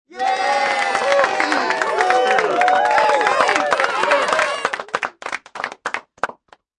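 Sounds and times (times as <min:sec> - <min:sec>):
medium size studio audience crowd cheering and yelling: 0:00.1 - 0:05.2
studio audience clapping: 0:00.1 - 0:06.7.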